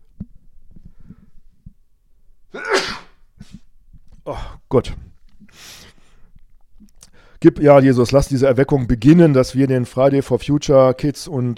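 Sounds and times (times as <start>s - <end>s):
person sneezing: 2.5s - 3.7s
speech: 4.3s - 5.1s, 7.4s - 11.5s.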